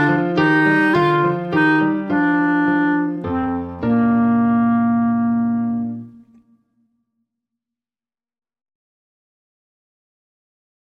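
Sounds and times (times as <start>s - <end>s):
slow waltz solo with accompaniment: 0.0s - 6.3s.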